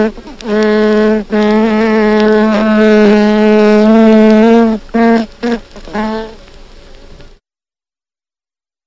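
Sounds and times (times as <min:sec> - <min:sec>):
European honey bee buzzing: 0:00.0 - 0:06.5.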